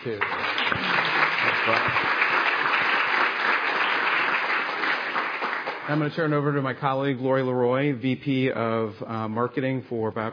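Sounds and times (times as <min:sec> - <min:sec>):
speech: 0:00.0 - 0:00.9, 0:01.6 - 0:02.3, 0:05.9 - 0:10.3
audience applause: 0:00.0 - 0:06.5.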